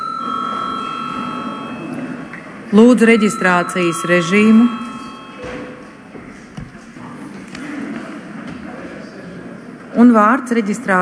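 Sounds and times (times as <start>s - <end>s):
electric bell rung to call a break: 0.0s - 6.1s
speech: 2.7s - 4.8s, 10.0s - 11.0s.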